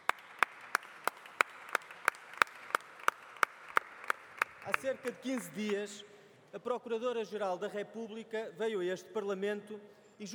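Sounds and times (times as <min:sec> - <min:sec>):
crowd applause in parliament chamber: 0:00.0 - 0:05.6
speech: 0:04.7 - 0:10.3.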